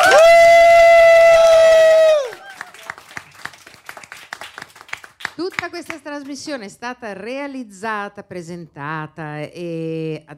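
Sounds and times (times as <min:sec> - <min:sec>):
audience applause: 0:00.0 - 0:05.6
speech: 0:06.2 - 0:10.3.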